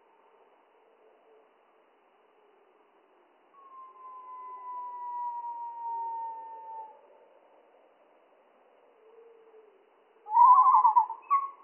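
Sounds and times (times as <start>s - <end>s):
Spotted flycatcher song, slowed, warbled phrases and whistled tones: 3.6s - 7.0s, 10.2s - 11.6s.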